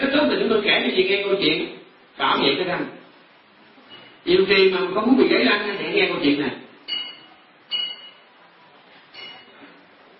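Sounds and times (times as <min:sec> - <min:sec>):
speech: 0:00.0 - 0:03.0, 0:04.2 - 0:06.6
bell being struck: 0:06.9 - 0:08.2.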